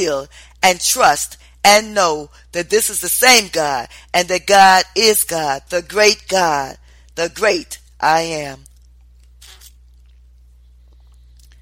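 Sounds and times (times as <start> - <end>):
speech: 0.0 - 8.7
person drinking a sip of water: 8.7 - 11.5.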